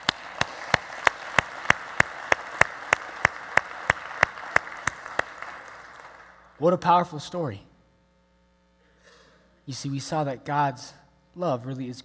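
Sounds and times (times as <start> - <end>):
audience clapping: 0.0 - 6.6
speech: 6.6 - 7.7, 9.7 - 12.0.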